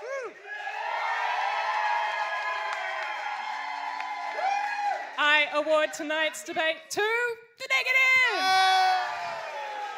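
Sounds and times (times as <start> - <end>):
audience cheering: 0.0 - 6.4, 8.3 - 9.9
speech: 5.4 - 8.6.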